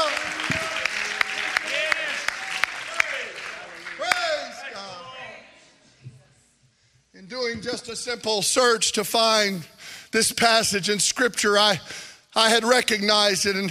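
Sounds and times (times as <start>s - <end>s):
audience clapping hands: 0.0s - 4.9s
speech: 7.9s - 13.6s.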